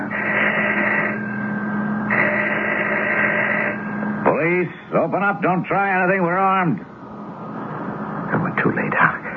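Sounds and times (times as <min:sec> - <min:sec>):
doorbell ringing: 0:00.0 - 0:04.4
speech: 0:04.6 - 0:06.9, 0:08.6 - 0:09.2.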